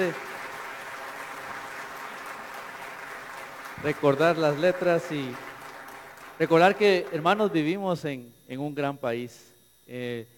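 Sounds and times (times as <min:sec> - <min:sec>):
speech: 0:00.0 - 0:00.3, 0:03.8 - 0:05.5, 0:06.4 - 0:10.3
audience applause: 0:00.0 - 0:07.6.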